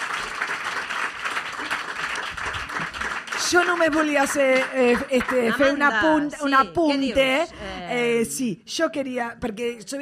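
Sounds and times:
audience applause: 0.0s - 5.8s
speech: 3.5s - 10.0s.

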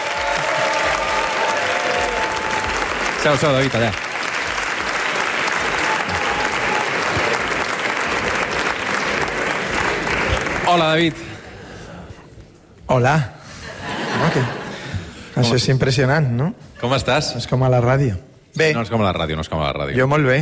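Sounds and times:
audience applause: 0.0s - 11.1s
speech: 3.2s - 4.1s, 10.7s - 11.3s, 12.9s - 13.4s, 14.2s - 14.6s, 15.4s - 20.4s
laughter: 13.5s - 15.3s.

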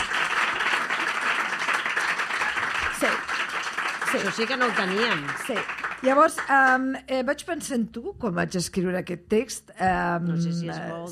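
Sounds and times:
applause: 0.0s - 7.0s
speech: 4.1s - 11.1s.

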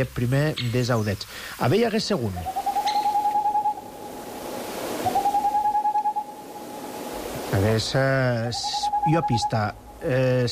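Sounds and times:
speech: 0.0s - 2.6s, 7.6s - 10.5s
steady rushing hiss: 0.0s - 10.5s
Tengmalm's owl hooting: 2.2s - 10.4s.

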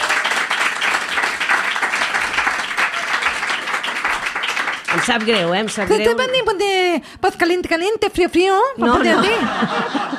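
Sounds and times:
audience applause: 0.0s - 6.0s
speech: 5.0s - 10.1s
laughter: 8.9s - 10.1s.

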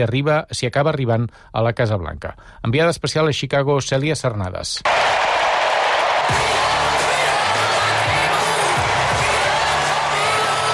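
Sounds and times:
speech: 0.0s - 5.4s
crowd ovation: 4.9s - 10.7s.

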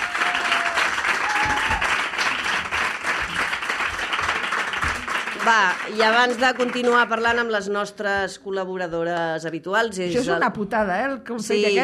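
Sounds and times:
audience applause: 0.0s - 7.2s
speech: 5.5s - 11.8s.

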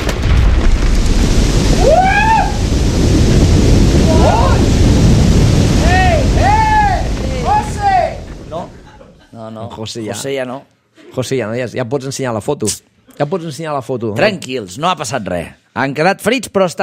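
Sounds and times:
avalanche rumble catching three skiers on a mountain slope: 0.0s - 9.1s
laughter: 8.6s - 9.4s
speech: 9.8s - 16.8s.

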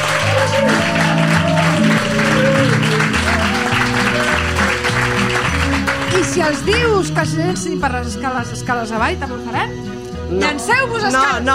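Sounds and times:
audience applause: 0.0s - 7.7s
speech: 6.4s - 11.5s.

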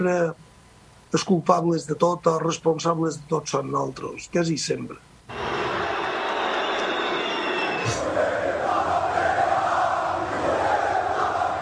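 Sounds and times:
speech: 0.0s - 0.4s, 1.1s - 5.4s
stadium crowd whistling at a football player: 5.3s - 11.6s.

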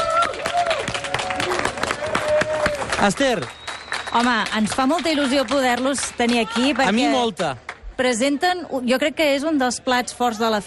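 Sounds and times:
audience clapping at the Fira Mediterrània festival in Manresa: 0.0s - 7.9s
speech: 3.0s - 10.6s.

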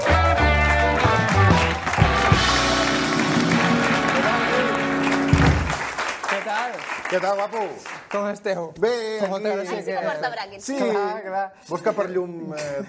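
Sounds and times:
loud applause: 0.0s - 8.4s
speech: 7.1s - 12.8s.

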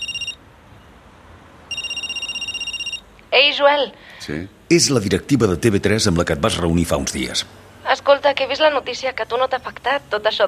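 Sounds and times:
phone ringing for an incoming call: 0.0s - 0.4s, 1.7s - 3.1s
speech: 3.4s - 10.4s.

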